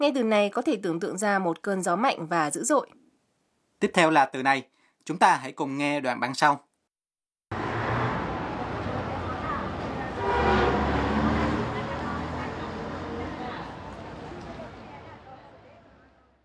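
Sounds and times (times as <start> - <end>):
speech: 0.0 - 3.0, 3.8 - 6.7
traffic roar: 7.5 - 16.4
car horn: 9.7 - 14.0.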